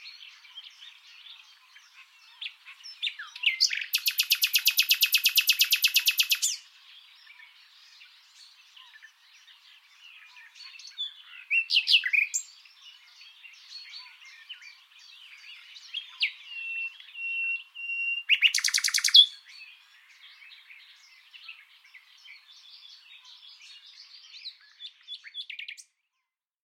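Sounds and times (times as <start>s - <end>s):
other birds twittering: 0.0s - 25.9s
Common nightingale rattling song: 3.5s - 6.6s, 18.3s - 19.3s.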